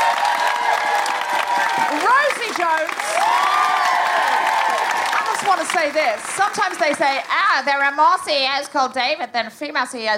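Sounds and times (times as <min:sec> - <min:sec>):
audience applause: 0:00.0 - 0:08.0
speech: 0:05.5 - 0:10.1.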